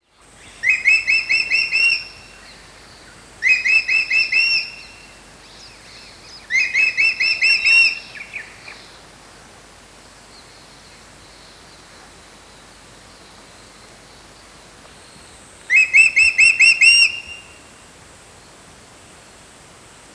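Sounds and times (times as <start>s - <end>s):
crested hawk-eagle giving piercing whistles: 0.6s - 2.2s, 3.4s - 5.0s, 6.5s - 8.5s, 15.7s - 17.6s.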